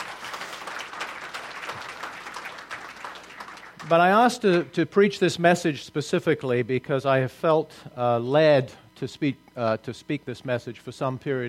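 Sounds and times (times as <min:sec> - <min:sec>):
audience applause: 0:00.0 - 0:04.7
speech: 0:03.9 - 0:11.4.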